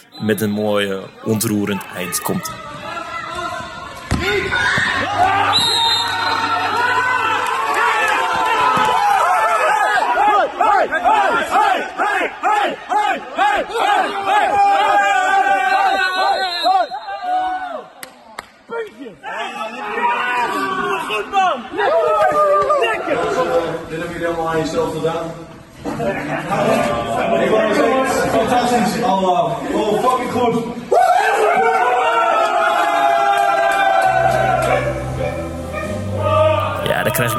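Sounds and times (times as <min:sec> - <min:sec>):
speech: 0:00.2 - 0:02.9, 0:21.0 - 0:30.8, 0:37.2 - 0:37.3
team cheering and shouting in a locker room: 0:01.3 - 0:18.0, 0:18.9 - 0:23.9, 0:30.9 - 0:37.3.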